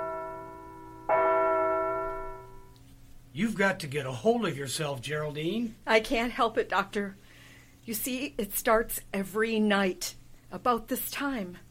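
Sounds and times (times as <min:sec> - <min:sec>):
hall clock striking: 0:00.0 - 0:02.8
steady metallic hum: 0:00.0 - 0:07.3
speech: 0:03.4 - 0:07.2, 0:07.9 - 0:11.6.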